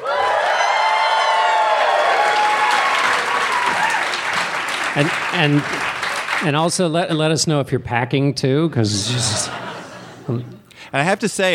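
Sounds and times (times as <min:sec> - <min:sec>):
whoops and shouts: 0:00.0 - 0:04.2
live audience cheering and applauding: 0:00.0 - 0:06.6
speech: 0:05.0 - 0:09.7, 0:10.3 - 0:11.5
laughter: 0:08.7 - 0:10.7.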